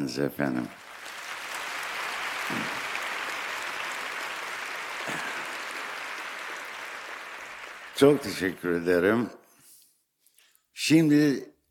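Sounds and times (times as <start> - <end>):
speech: 0.0 - 0.8, 2.5 - 2.8, 8.0 - 9.4, 10.8 - 11.7
audience applause: 0.7 - 9.1.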